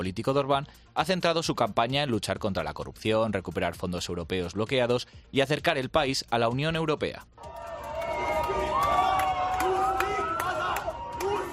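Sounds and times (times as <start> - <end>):
speech: 0.0 - 7.7
Hungarian citizens shouting in the streets: 7.5 - 11.5.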